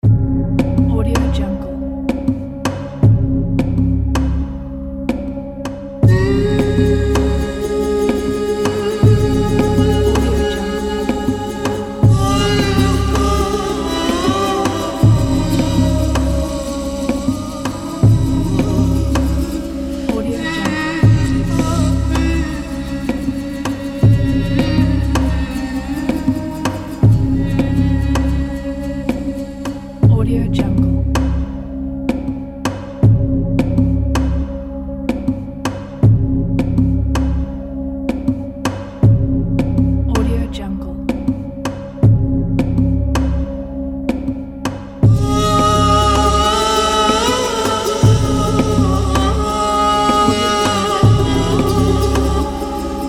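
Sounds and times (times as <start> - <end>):
Arabic cinematic music: 0.0 - 53.0.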